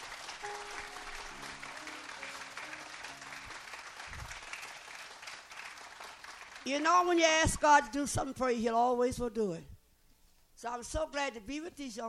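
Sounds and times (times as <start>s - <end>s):
audience applause: 0.0s - 6.7s
speech: 6.7s - 9.7s, 10.6s - 12.0s.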